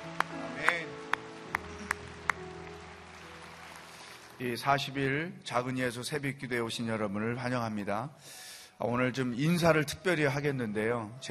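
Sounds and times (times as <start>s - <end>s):
hand claps: 0.0s - 4.4s
speech: 4.4s - 11.2s.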